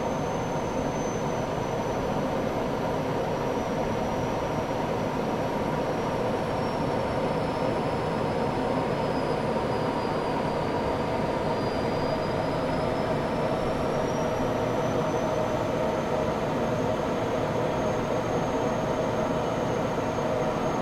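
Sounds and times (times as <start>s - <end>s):
fighter jet interior in flight: 0.0s - 20.7s.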